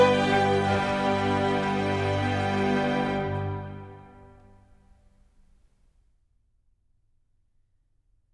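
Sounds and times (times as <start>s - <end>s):
concerto in G major allegro: 0.0s - 4.7s.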